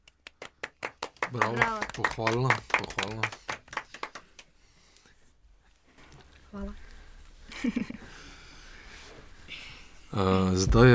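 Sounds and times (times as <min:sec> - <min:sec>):
hands clapping: 0:00.0 - 0:04.6
speech: 0:01.3 - 0:03.5, 0:06.5 - 0:06.8, 0:07.6 - 0:08.2, 0:10.1 - 0:10.9
laughter: 0:07.5 - 0:08.1.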